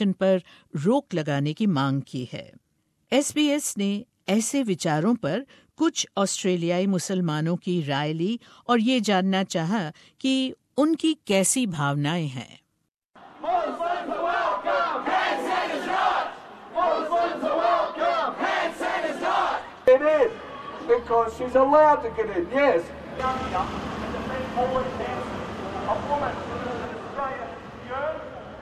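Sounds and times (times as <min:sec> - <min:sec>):
speech: 0:00.0 - 0:12.6, 0:20.9 - 0:24.0, 0:24.6 - 0:25.2, 0:25.9 - 0:26.7
protest crowd chanting outside a building: 0:13.2 - 0:27.9.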